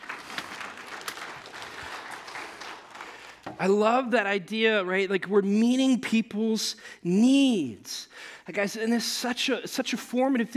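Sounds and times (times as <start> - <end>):
audience clapping: 0.0 - 3.7
speech: 3.6 - 10.5.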